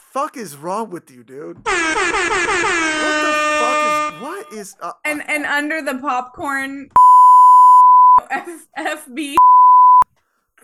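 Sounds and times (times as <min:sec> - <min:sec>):
speech: 0:00.2 - 0:07.0, 0:08.2 - 0:09.4
censor bleep over profanity: 0:07.0 - 0:08.2, 0:09.4 - 0:10.0.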